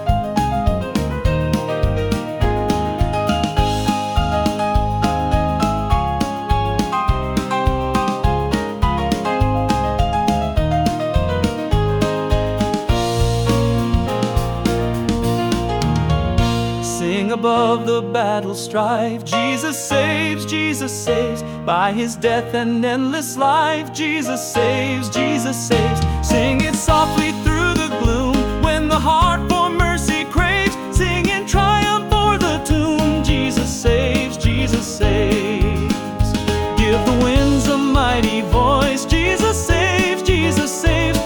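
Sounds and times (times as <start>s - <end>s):
upbeat gospel hymn on piano: 0.0s - 41.2s.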